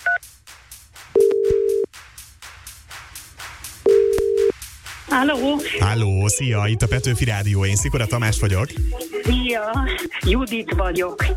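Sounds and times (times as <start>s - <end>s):
telephone ringing tones of a call placed by a Hungarian radio host: 1.2s - 1.9s, 3.9s - 4.5s
speech: 5.2s - 11.3s.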